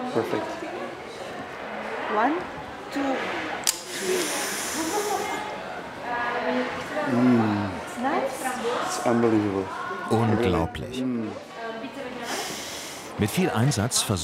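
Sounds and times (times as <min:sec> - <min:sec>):
people talking and cheering: 0:00.0 - 0:14.2
speech: 0:00.2 - 0:00.6, 0:02.1 - 0:05.5, 0:06.1 - 0:11.5, 0:13.2 - 0:14.2
hard snort through a chocolate-powder snorting machine: 0:03.9 - 0:05.4.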